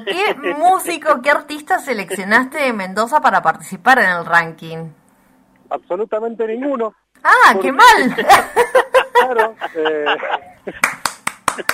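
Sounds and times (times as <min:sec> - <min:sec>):
laughter: 0:00.0 - 0:00.7, 0:07.9 - 0:11.7
speech: 0:00.0 - 0:05.0, 0:05.7 - 0:11.0, 0:11.6 - 0:11.7
slow sharp hand claps: 0:10.8 - 0:11.7.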